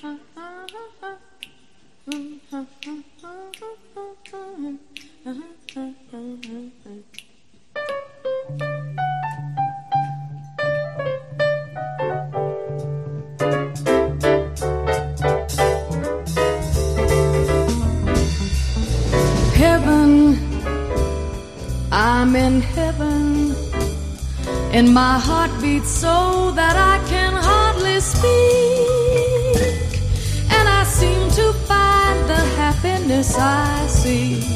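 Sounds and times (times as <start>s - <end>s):
person singing a recorded song: 0.0s - 7.3s, 24.7s - 34.5s
finger snapping: 0.6s - 10.3s
low sustained bass: 8.5s - 34.5s
band playing: 15.7s - 20.1s
speech: 24.9s - 27.3s, 33.1s - 34.5s.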